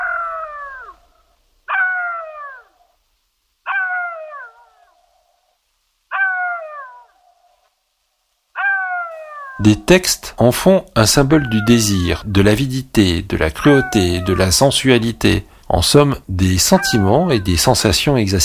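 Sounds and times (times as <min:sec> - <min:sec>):
jackal howling: 0:00.0 - 0:03.0, 0:03.7 - 0:05.4, 0:06.1 - 0:07.6, 0:08.6 - 0:09.6, 0:11.2 - 0:12.3, 0:13.6 - 0:14.9, 0:16.6 - 0:17.7
speech: 0:09.6 - 0:18.4.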